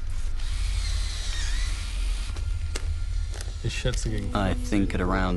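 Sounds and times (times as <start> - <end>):
drill boring through a door lock: 0.1 - 3.9
speech: 3.7 - 5.3.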